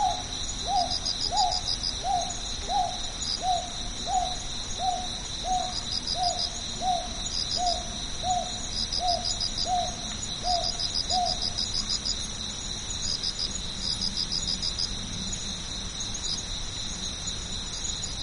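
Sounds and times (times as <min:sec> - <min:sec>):
northern boobook hooting: 0:00.0 - 0:11.4
pulsing cricket song: 0:00.0 - 0:18.2.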